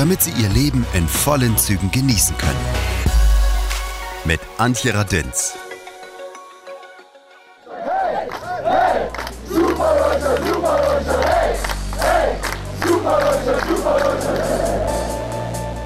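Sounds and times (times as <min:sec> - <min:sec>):
speech: 0:00.0 - 0:03.0, 0:04.2 - 0:05.6
hockey team men chanting and cheering celebrating bronze medal: 0:07.6 - 0:15.5.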